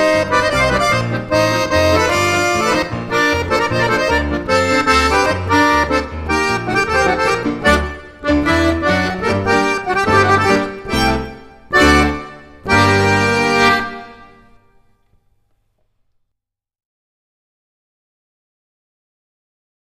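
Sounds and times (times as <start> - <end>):
accordionist troubadour playing in Balkan style: 0.0 - 15.0.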